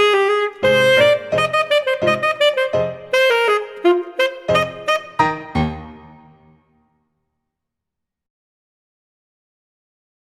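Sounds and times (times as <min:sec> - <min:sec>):
full saxophone ensemble playing a scherzo: 0:00.0 - 0:05.9.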